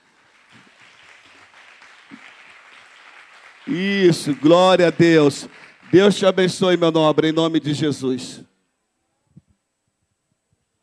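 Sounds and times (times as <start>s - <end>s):
audience applause: 0.0s - 7.5s
speech: 3.7s - 8.5s.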